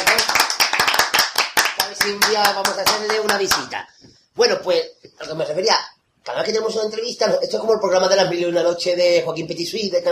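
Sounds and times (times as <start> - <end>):
applause: 0.0 - 3.7
speech: 2.0 - 10.0.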